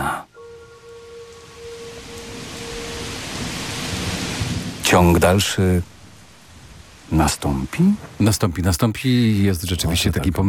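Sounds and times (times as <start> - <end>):
faint tonal hum: 0.3 - 4.5
low thunder rumbling outside the window: 0.3 - 8.2
steady heavy rain outside the window: 0.4 - 10.4
speech: 4.9 - 5.9, 7.1 - 10.4.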